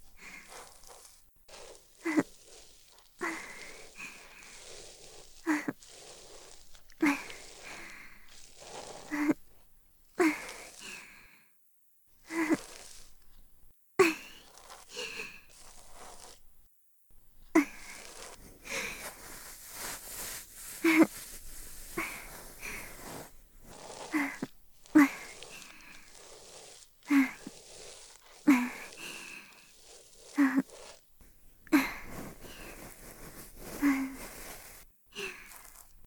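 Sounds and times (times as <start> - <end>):
binaural ear cleaning: 0.0 - 11.1, 12.2 - 16.5, 17.2 - 36.0
binaural breathing during ear cleaning: 0.1 - 1.7, 3.2 - 9.4, 10.2 - 11.6, 17.6 - 30.4, 31.6 - 35.9.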